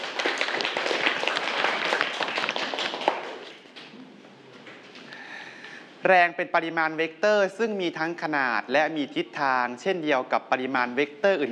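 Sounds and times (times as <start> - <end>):
students clapping hands: 0.0 - 3.9
speech: 6.0 - 11.4.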